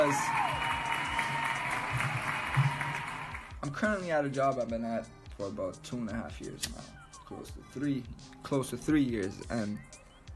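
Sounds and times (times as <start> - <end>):
crowd applause: 0.0 - 3.5
speech: 0.1 - 0.7, 3.6 - 10.0.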